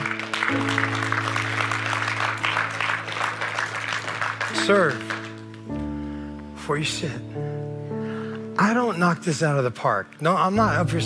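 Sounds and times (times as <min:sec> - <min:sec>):
audience applause: 0:00.0 - 0:05.8
speech: 0:00.5 - 0:01.0, 0:04.6 - 0:05.1, 0:06.7 - 0:07.6, 0:08.6 - 0:11.0.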